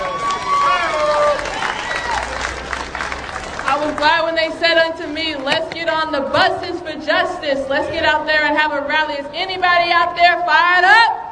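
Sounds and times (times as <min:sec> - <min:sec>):
audience applause: 0:00.0 - 0:04.2
speech: 0:04.0 - 0:11.2.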